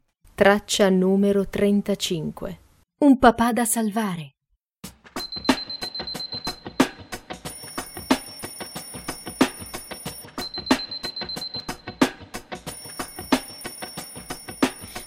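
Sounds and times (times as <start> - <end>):
speech: 0.4 - 4.4
alarm clock ringing: 5.2 - 6.6, 7.5 - 11.8, 12.7 - 15.0.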